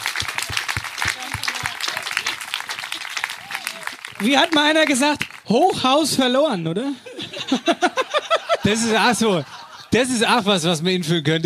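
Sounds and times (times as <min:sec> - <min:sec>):
applause: 0:00.0 - 0:05.5
speech: 0:04.2 - 0:08.0, 0:08.7 - 0:11.4
laughter: 0:06.9 - 0:10.6.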